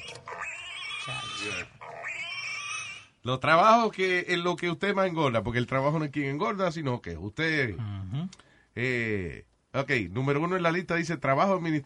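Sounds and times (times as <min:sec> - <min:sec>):
piglet squeals and oinks: 0:00.0 - 0:03.2
speech: 0:01.0 - 0:01.8, 0:03.2 - 0:11.8.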